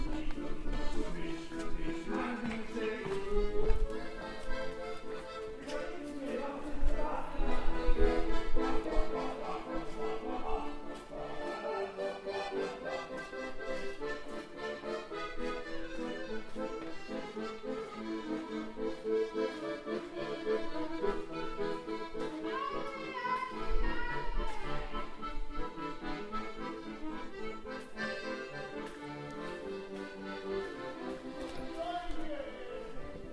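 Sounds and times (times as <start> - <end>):
accordion at Margaretenplatz: 0.0 - 33.3.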